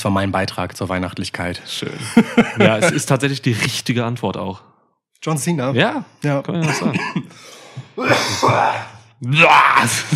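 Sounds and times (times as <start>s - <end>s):
speech: 0.0s - 10.1s
coughing blended with laughter: 2.0s - 3.1s, 6.6s - 7.4s, 8.0s - 8.8s.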